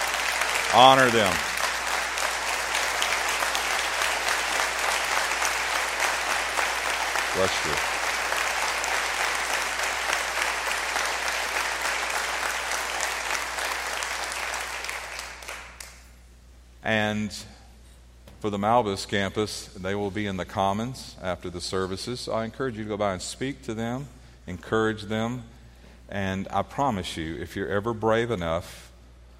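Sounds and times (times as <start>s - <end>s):
audience applause: 0.0s - 16.0s
speech: 0.7s - 1.5s, 7.4s - 7.9s, 16.9s - 17.6s, 18.4s - 25.5s, 26.1s - 28.9s.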